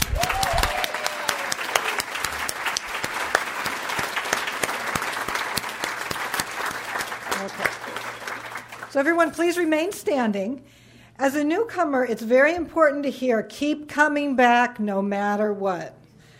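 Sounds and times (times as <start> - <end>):
audience applauding newcomers: 0.0 - 9.0
speech: 9.0 - 16.0.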